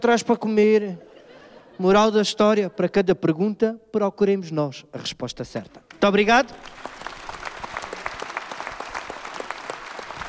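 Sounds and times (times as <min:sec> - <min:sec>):
speech: 0:00.0 - 0:01.1, 0:01.8 - 0:06.9
laughter: 0:00.8 - 0:02.3
audience applause: 0:06.5 - 0:10.2.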